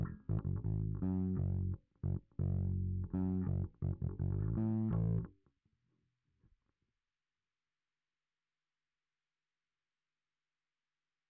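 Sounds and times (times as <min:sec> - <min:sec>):
bass guitar through SansAmp: 0:00.0 - 0:05.3.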